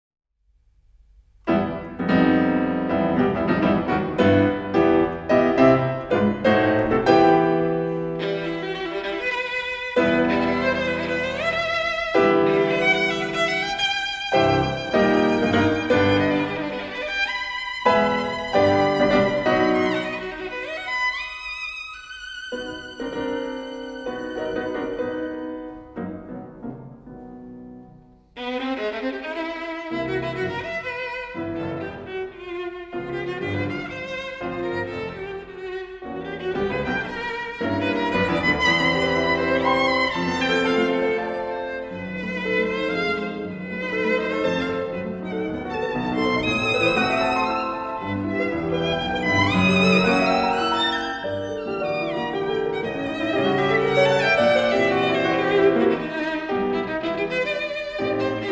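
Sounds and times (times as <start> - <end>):
violin sonata: 1.5 - 58.5.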